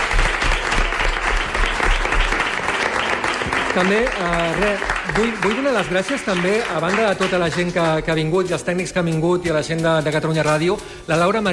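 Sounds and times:
audience applause: 0:00.0 - 0:08.1
speech: 0:03.7 - 0:11.5.

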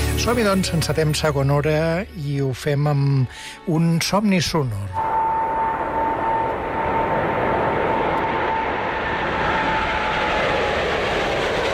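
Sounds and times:
speech: 0:00.2 - 0:05.2
faint sustained airplane whine: 0:04.5 - 0:11.7
airplane flying past with engine drone: 0:04.8 - 0:11.7.

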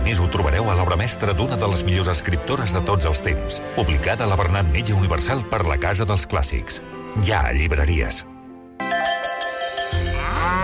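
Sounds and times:
speech: 0:00.1 - 0:08.3
bright tonal layered sound: 0:08.8 - 0:10.6
dairy cows mooing: 0:10.0 - 0:10.6.

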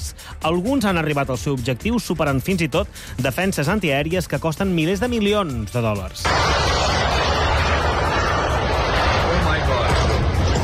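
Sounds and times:
speech: 0:00.4 - 0:06.9
Shahed kamikaze drone engine buzzing in flight: 0:06.3 - 0:10.6.

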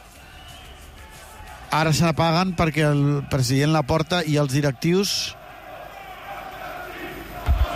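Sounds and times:
speech: 0:01.7 - 0:05.4
stadium fans chanting protest: 0:05.3 - 0:07.7.

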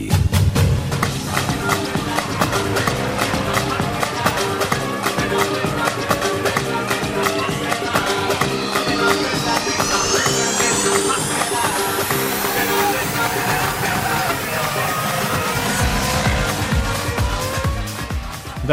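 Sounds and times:
formula racing cars screaming around a circuit: 0:00.6 - 0:18.6
crowd murmur: 0:01.2 - 0:10.1.

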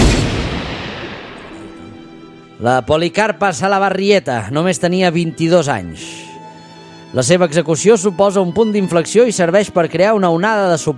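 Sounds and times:
gunfire from a Spanish troops firing squad execution: 0:00.0 - 0:01.6
speech: 0:02.6 - 0:06.2, 0:07.1 - 0:10.9.

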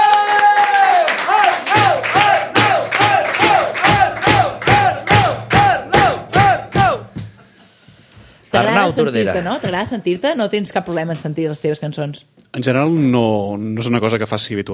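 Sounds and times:
crowd clapping in rhythm: 0:00.0 - 0:07.0
voices cheering and chanting: 0:00.0 - 0:07.1
speech: 0:08.8 - 0:14.7.

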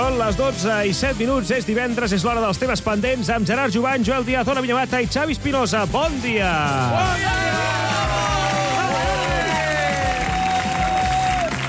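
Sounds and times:
speech: 0:00.2 - 0:07.7
audience applause: 0:07.5 - 0:11.6.

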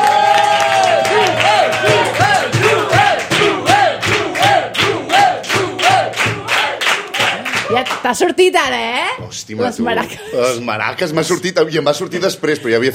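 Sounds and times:
loud audience applause: 0:00.0 - 0:08.1
speech: 0:08.1 - 0:12.9.

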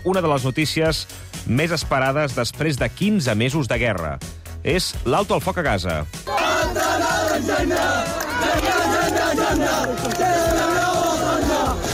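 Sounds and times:
speech: 0:00.0 - 0:10.8
crowd celebrating ceasefire shouting and cheering: 0:06.2 - 0:11.9.

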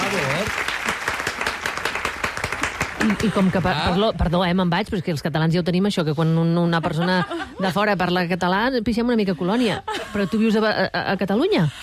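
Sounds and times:
big round of applause from a crowd: 0:00.0 - 0:04.2
speech: 0:03.0 - 0:11.8.

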